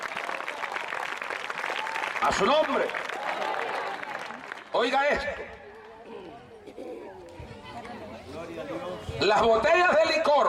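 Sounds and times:
audience clapping: 0.0s - 6.0s
speech: 2.2s - 3.5s, 4.7s - 5.6s, 8.6s - 10.4s.

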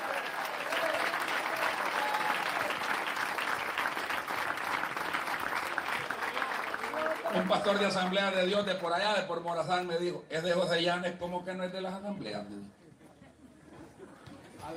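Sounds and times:
large crowd applause: 0.0s - 8.9s
speech: 7.3s - 12.8s.

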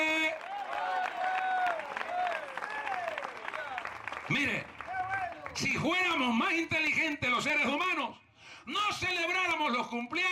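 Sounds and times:
audience applause: 0.0s - 5.8s
speech: 4.3s - 4.8s, 5.6s - 10.3s.

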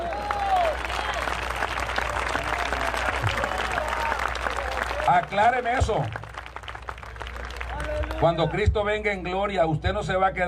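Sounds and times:
small round of applause: 0.0s - 8.8s
speech: 5.1s - 6.2s, 8.2s - 10.4s.

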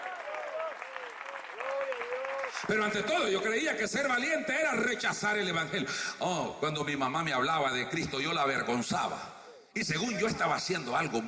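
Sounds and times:
audience applause: 0.0s - 3.1s
speech: 2.6s - 11.2s.

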